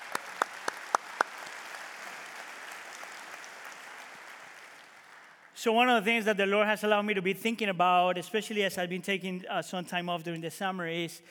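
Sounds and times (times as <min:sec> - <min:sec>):
hand claps: 0:00.0 - 0:05.6
speech: 0:05.6 - 0:11.3.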